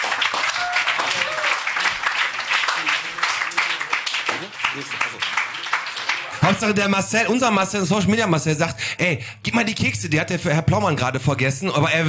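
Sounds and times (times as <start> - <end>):
audience applause: 0.0 - 7.2
faint voices and cheers: 0.3 - 5.2
speech: 4.8 - 5.4, 6.5 - 12.0.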